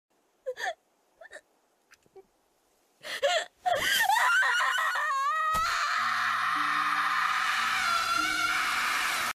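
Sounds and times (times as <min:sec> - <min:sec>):
person screaming: 0:04.0 - 0:09.3.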